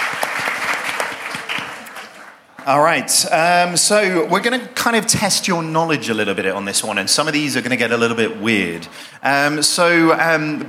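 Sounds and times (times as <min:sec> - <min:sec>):
audience applause: 0:00.0 - 0:02.6
speech: 0:02.7 - 0:10.6.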